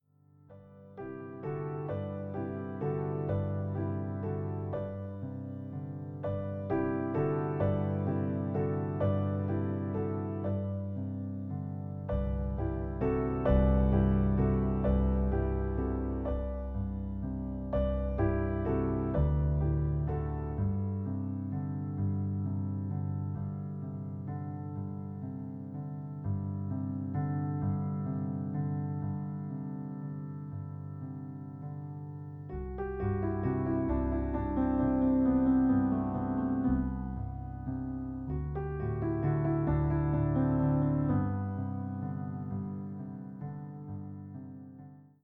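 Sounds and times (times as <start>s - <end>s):
piano: 0.0s - 45.2s.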